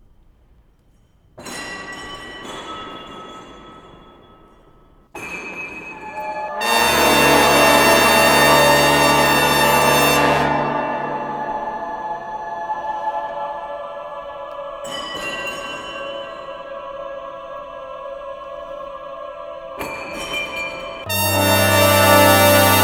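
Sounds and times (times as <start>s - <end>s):
brass: 6.6s - 12.2s, 21.1s - 22.8s
choir: 6.6s - 22.8s.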